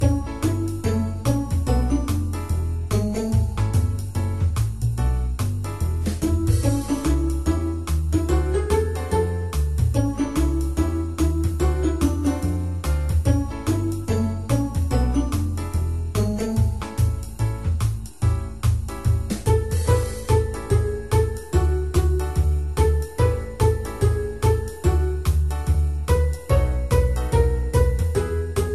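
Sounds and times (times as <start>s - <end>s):
music: 0.0s - 28.7s.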